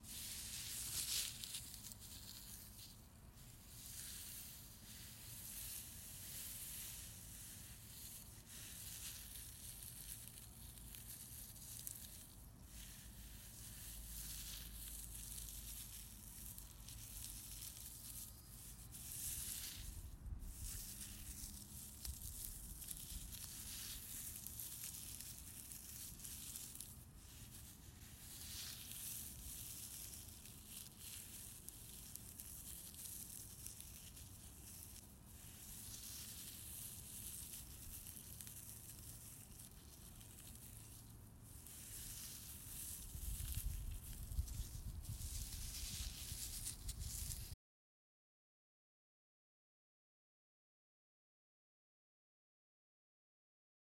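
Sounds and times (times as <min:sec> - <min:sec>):
crunch: 0:00.0 - 0:47.6.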